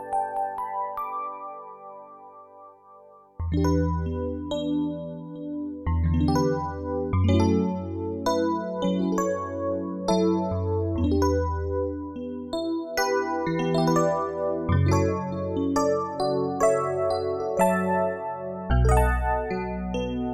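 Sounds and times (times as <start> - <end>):
electric piano: 0.0 - 20.3.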